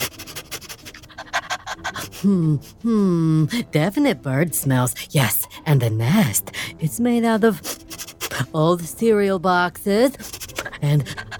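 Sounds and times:
dog sniffing: 0.0s - 2.2s, 7.6s - 8.4s, 10.2s - 11.3s
speech: 1.9s - 7.8s, 8.4s - 11.3s.

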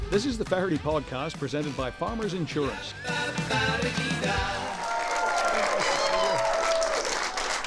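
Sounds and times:
speech: 0.1s - 4.8s
audience applause: 4.4s - 7.6s
cheers and whoops: 4.6s - 7.6s.

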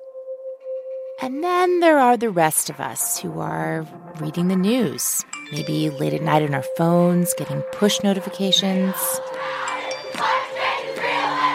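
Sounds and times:
steady high ringing tones: 0.0s - 11.5s
speech: 1.2s - 9.4s
street protest crowd chanting: 8.5s - 11.5s.

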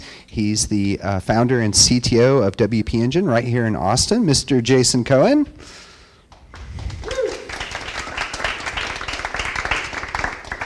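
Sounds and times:
speech: 0.3s - 5.8s
crowd applauding: 6.5s - 10.6s
person cheering: 6.8s - 8.2s.

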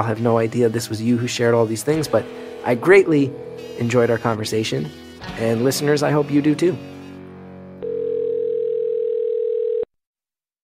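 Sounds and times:
speech: 0.0s - 7.0s
telephone line tone before call connects: 7.8s - 9.9s.

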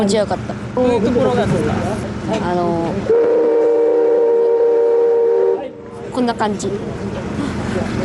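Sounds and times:
speech: 0.0s - 3.4s, 6.1s - 8.0s
steam locomotive whistle: 3.1s - 5.8s.

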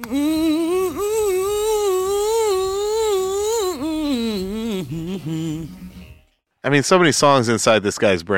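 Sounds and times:
speech: 0.0s - 0.4s, 6.7s - 8.3s
wordless humming in a studio recording: 0.0s - 6.0s.

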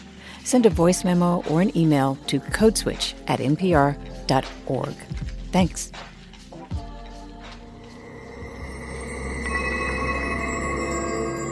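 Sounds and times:
speech: 0.5s - 6.1s
low musical drone: 6.6s - 11.5s
chimes ringing: 7.8s - 11.5s.

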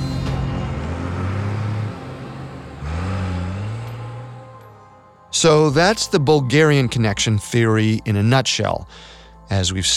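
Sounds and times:
getaway truck engine revving and driving off: 0.0s - 6.5s
speech: 5.4s - 9.9s.

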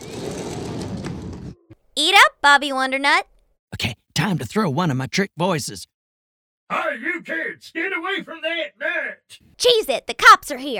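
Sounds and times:
glass sliding door rolling open: 0.0s - 1.8s
speech: 2.0s - 5.9s, 6.7s - 10.7s.

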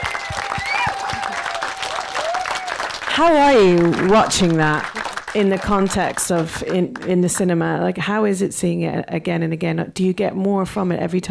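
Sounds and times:
audience applause: 0.0s - 7.5s
speech: 3.2s - 11.2s.

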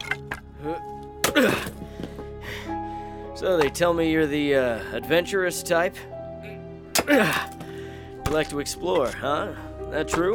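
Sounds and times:
speech: 0.6s - 1.9s, 3.4s - 6.1s, 7.1s - 7.5s, 8.3s - 10.3s
axe splitting wood: 1.2s - 1.9s, 6.9s - 9.4s, 10.1s - 10.3s.

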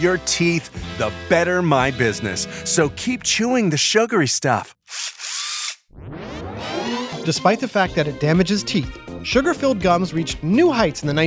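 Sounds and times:
speech: 0.0s - 5.2s, 7.2s - 11.2s
dental drill whirring: 4.8s - 5.9s.

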